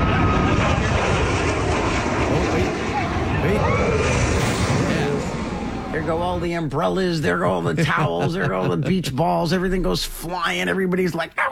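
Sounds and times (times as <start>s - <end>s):
jet aircraft roaring past low overhead: 0.0s - 8.3s
faint crowd murmur: 2.2s - 6.7s
laughter: 6.1s - 9.7s
speech: 6.1s - 11.5s.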